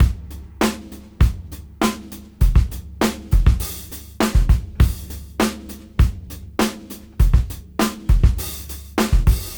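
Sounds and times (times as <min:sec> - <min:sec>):
old school beat at 101 BPM: 0:00.0 - 0:09.5.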